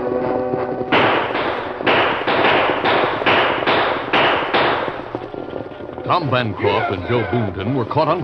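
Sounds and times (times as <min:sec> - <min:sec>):
rapid gunshots: 0:00.1 - 0:05.7
speech: 0:06.2 - 0:08.2.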